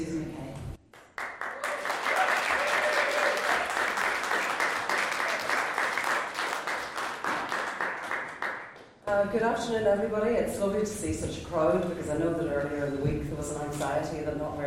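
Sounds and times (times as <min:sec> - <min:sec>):
crowd applause: 0:01.0 - 0:08.8
speech: 0:09.3 - 0:14.6.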